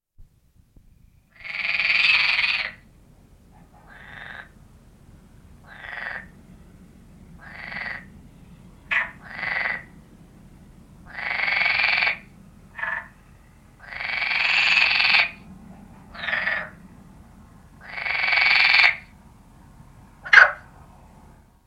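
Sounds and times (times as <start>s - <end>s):
common frog croaking: 1.3s - 2.8s, 3.6s - 4.5s, 5.6s - 6.3s, 7.4s - 8.1s, 8.9s - 10.0s, 11.1s - 13.2s, 13.8s - 15.4s, 16.1s - 16.8s, 17.8s - 19.1s, 20.2s - 20.7s.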